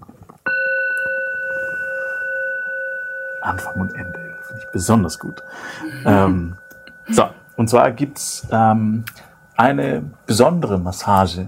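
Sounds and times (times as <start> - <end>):
gong strike: 0.5 - 9.0
speech: 3.4 - 11.4.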